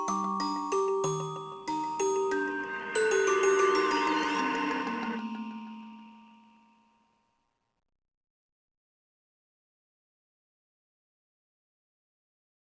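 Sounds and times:
background music loop: 0.0 - 6.9.

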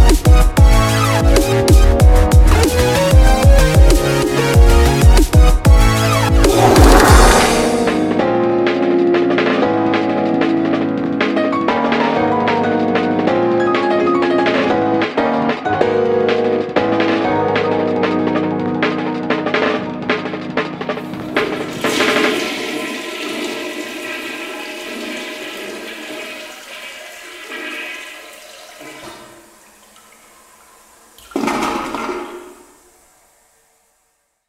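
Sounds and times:
instrumental music: 0.0 - 21.6.

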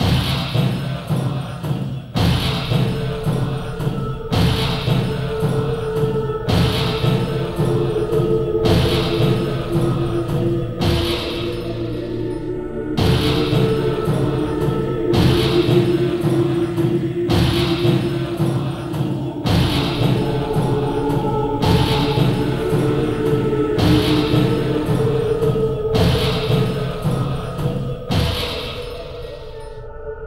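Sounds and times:
Norse worshippers chanting: 0.0 - 30.2.

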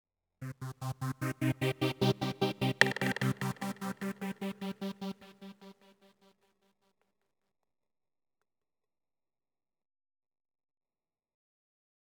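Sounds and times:
synth one-shot: 0.4 - 5.7
percussion one-shot: 1.2 - 5.3.

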